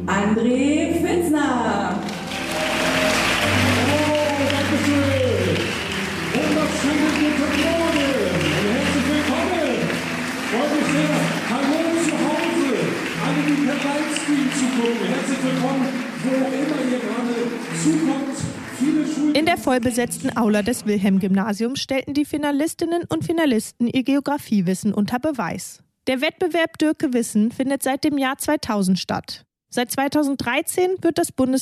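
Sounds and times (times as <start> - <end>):
speech: 0.0 - 0.9, 14.3 - 31.6
thunderous audience applause: 2.0 - 20.6.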